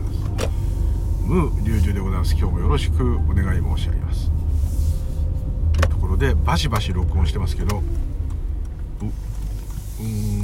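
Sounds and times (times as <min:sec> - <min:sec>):
car approaching: 0:00.0 - 0:10.4
speech: 0:01.3 - 0:04.4, 0:06.2 - 0:08.1, 0:09.0 - 0:09.2, 0:10.0 - 0:10.4.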